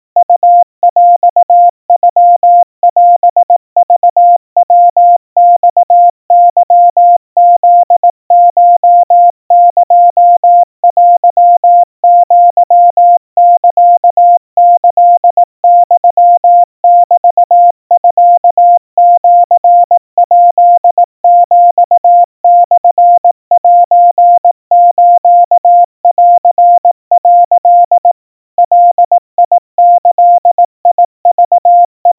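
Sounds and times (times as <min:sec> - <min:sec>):
crispy 700 Hz Morse code tones at 60 cpm: 0:00.0 - 0:32.1.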